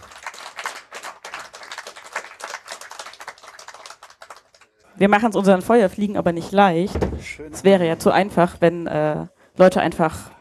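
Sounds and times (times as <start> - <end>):
audience applauding: 0.0 - 4.8
speech: 5.0 - 10.3.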